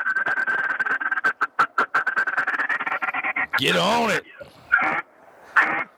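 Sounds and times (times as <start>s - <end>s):
duck call blown hard for distant migrating ducks: 0.0s - 5.9s
speech: 3.6s - 4.3s.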